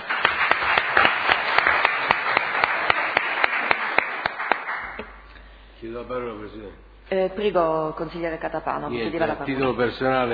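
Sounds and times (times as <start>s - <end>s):
applause welcoming a new councillor: 0.0s - 5.0s
speech: 6.0s - 10.3s.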